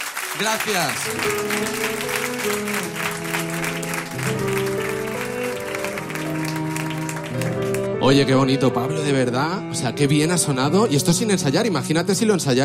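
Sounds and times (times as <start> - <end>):
audience applause: 0.0 - 8.0
speech: 0.4 - 3.0, 8.0 - 12.6.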